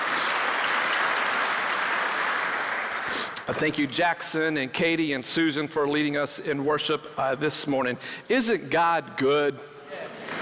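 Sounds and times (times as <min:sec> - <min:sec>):
large crowd applause: 0:00.0 - 0:03.4
speech: 0:03.1 - 0:10.1.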